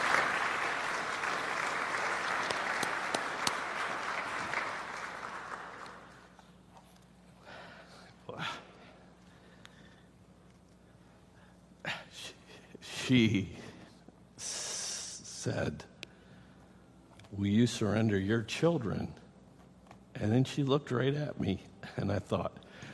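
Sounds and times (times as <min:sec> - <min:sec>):
audience applause: 0:00.0 - 0:06.3
speech: 0:13.1 - 0:13.6, 0:15.4 - 0:15.9, 0:17.4 - 0:19.2, 0:20.2 - 0:22.6.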